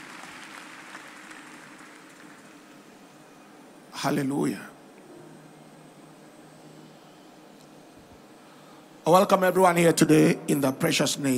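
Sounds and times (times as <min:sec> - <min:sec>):
audience clapping: 0:00.0 - 0:03.0
speech: 0:04.0 - 0:04.7, 0:09.1 - 0:11.3.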